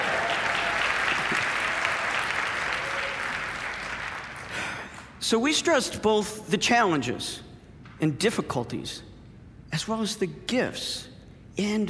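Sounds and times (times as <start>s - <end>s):
audience applause: 0.0s - 4.8s
speech: 5.2s - 7.4s, 8.0s - 9.1s, 9.7s - 11.8s.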